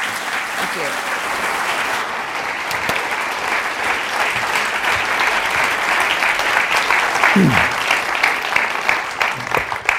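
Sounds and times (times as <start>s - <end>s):
audience applause welcoming speakers: 0.0s - 9.9s
speech: 0.7s - 1.5s, 7.4s - 7.7s.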